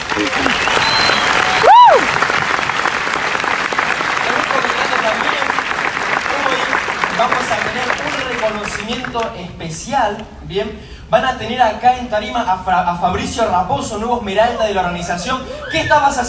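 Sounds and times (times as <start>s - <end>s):
audience applause: 0.0s - 9.3s
speech: 9.2s - 16.2s.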